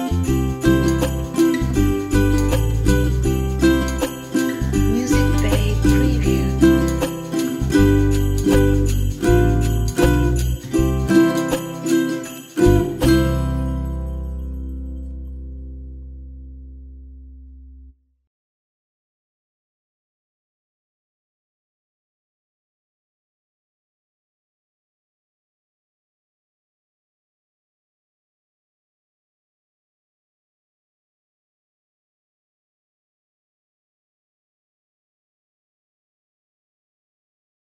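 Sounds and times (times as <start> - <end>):
ukulele Christmas tune: 0.0 - 17.3.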